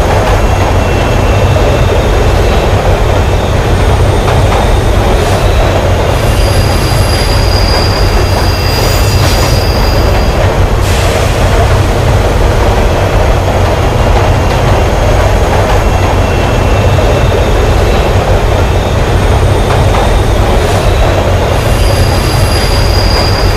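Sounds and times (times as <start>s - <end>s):
subway train: 0.0s - 23.5s.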